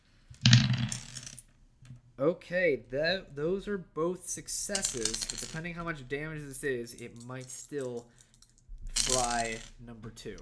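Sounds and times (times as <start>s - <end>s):
dice clattering across a hard tabletop: 0.4s - 1.4s, 4.7s - 5.7s, 7.4s - 9.8s
speech: 2.2s - 8.2s, 9.0s - 10.4s.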